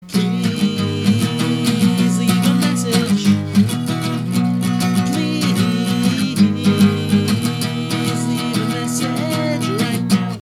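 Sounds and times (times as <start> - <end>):
acoustic song: 0.0 - 10.4.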